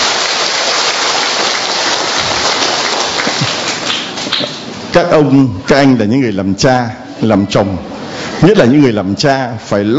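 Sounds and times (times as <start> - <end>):
audience applause: 0.0 - 4.7
speech: 5.0 - 9.9.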